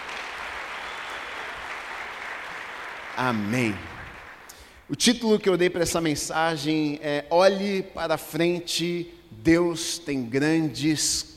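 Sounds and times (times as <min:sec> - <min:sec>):
audience clapping: 0:00.0 - 0:04.8
speech: 0:03.2 - 0:04.0, 0:04.9 - 0:11.3.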